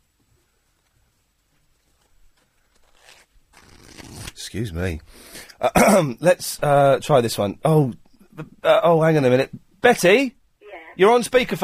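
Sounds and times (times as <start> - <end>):
soft rustling: 0.0 - 4.3
trouser fly zipper being pulled up: 2.8 - 4.4
speech: 4.5 - 10.4, 11.0 - 11.6.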